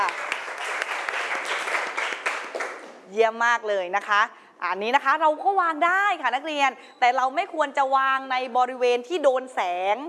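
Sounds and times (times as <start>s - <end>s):
applause: 0.0s - 3.0s
speech: 3.2s - 10.0s.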